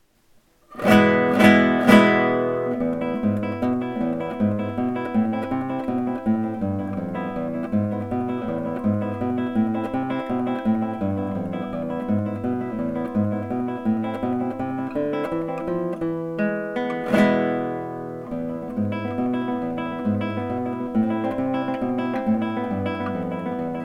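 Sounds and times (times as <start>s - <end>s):
guitar: 0.6s - 23.8s.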